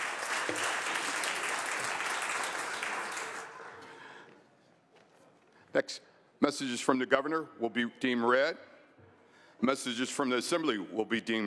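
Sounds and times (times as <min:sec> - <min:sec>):
applause in legislative chamber: 0:00.0 - 0:04.0
speech: 0:05.8 - 0:08.7, 0:09.6 - 0:11.4.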